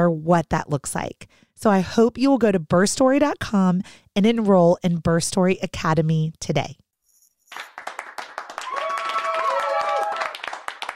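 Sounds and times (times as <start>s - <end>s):
speech: 0.0s - 6.8s
clapping: 7.5s - 10.9s
cheering: 8.2s - 10.9s.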